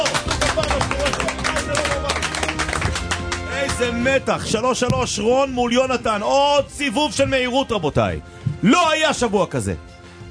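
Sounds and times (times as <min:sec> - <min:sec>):
studio audience of a Hebrew quiz show clapping as they stand up: 0:00.0 - 0:04.3
speech: 0:03.8 - 0:10.2.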